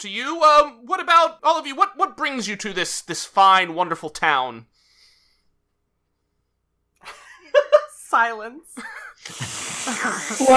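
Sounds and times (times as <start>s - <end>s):
speech: 0.0s - 4.8s, 7.0s - 10.5s
voice imitating noisy soup slurping: 9.3s - 10.5s.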